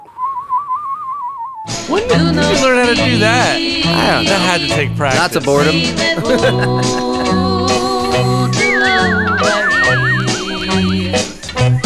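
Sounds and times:
person tongue whistling imitating a bird: 0:00.0 - 0:02.1, 0:07.8 - 0:11.8
sustained musical tones with repeating low pulse: 0:01.7 - 0:11.8
laughter: 0:01.8 - 0:11.8
speech: 0:01.9 - 0:07.4.

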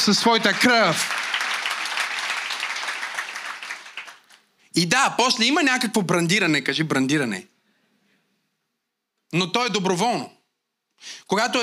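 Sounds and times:
speech: 0:00.0 - 0:01.2, 0:04.8 - 0:07.5, 0:09.3 - 0:10.4, 0:11.0 - 0:11.6
church congregation applauding: 0:00.0 - 0:04.6.

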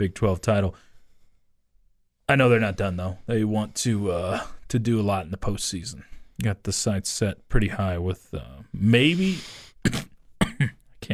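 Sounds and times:
speech: 0:00.0 - 0:00.9, 0:02.3 - 0:10.7
person coughing: 0:09.8 - 0:10.8.

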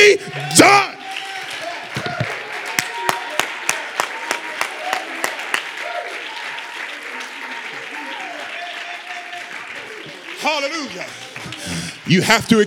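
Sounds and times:
audience clapping hands: 0:00.0 - 0:12.6
crowd noise and scattered voices: 0:00.0 - 0:12.6
speech: 0:00.1 - 0:00.9, 0:12.1 - 0:12.6.

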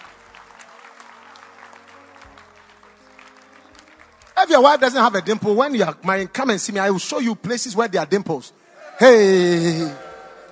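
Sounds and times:
applause: 0:00.0 - 0:05.8
speech: 0:04.4 - 0:10.0.

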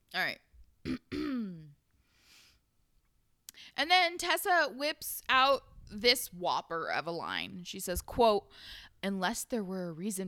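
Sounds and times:
person burping: 0:00.8 - 0:01.8
speech: 0:03.9 - 0:10.2.

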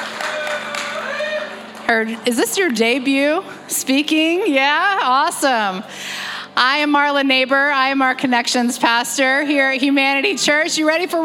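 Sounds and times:
audience applause: 0:00.0 - 0:02.3
speech: 0:01.9 - 0:11.2.

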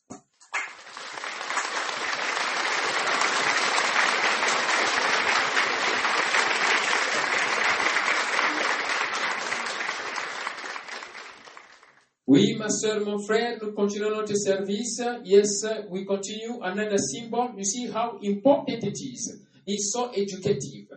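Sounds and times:
large audience applauding: 0:00.5 - 0:12.1
speech: 0:12.4 - 0:20.8.

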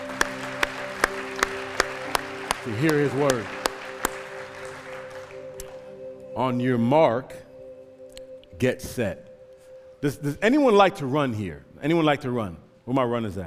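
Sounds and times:
crowd clapping in praise in a steady beat: 0:00.0 - 0:06.3
sustained organ chords: 0:00.0 - 0:13.3
speech: 0:02.6 - 0:03.6, 0:06.4 - 0:07.4, 0:08.6 - 0:09.3, 0:10.0 - 0:13.4.

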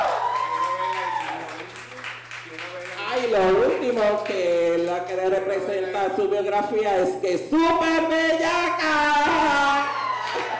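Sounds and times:
drawn-out cheer: 0:00.0 - 0:01.6, 0:09.8 - 0:10.5
audience applause: 0:00.0 - 0:04.9, 0:10.0 - 0:10.5
speech: 0:03.2 - 0:09.9.

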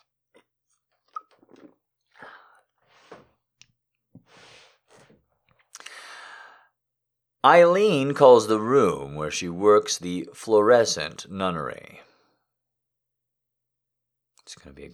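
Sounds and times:
sipping water: 0:00.0 - 0:06.2
speech: 0:07.4 - 0:12.1, 0:14.5 - 0:14.9.

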